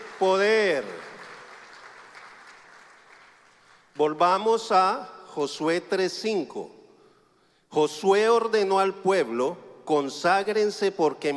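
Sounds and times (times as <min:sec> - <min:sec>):
audience clapping: 0:00.0 - 0:04.0
speech: 0:00.2 - 0:01.1, 0:04.0 - 0:06.8, 0:07.7 - 0:11.3.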